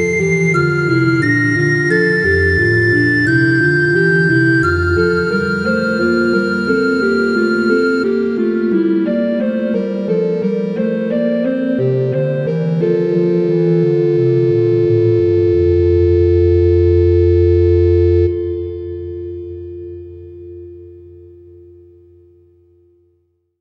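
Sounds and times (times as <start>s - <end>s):
organ playing a hymn: 0.0s - 18.6s.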